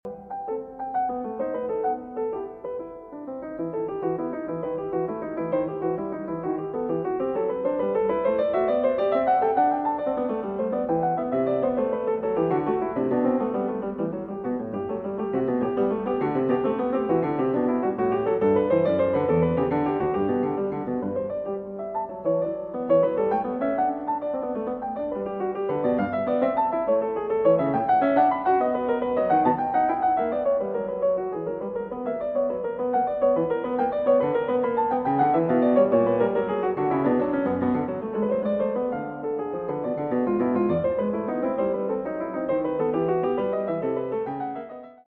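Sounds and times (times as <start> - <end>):
gavotte in E minor: 0.1 - 45.0.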